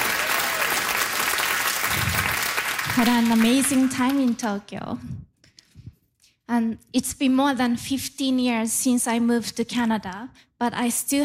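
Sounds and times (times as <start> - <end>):
audience applause at a talk: 0.0 - 4.4
speech: 3.0 - 5.3, 6.5 - 11.2.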